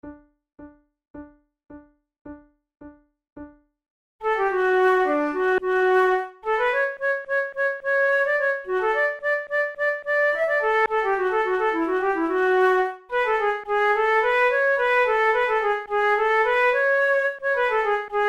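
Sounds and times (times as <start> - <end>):
flute duet: 4.2 - 18.2.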